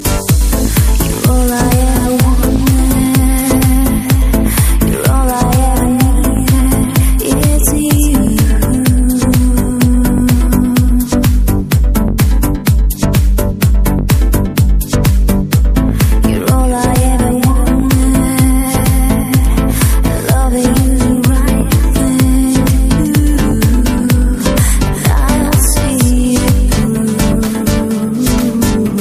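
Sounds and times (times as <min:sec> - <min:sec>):
vocal house music: 0:00.0 - 0:29.0.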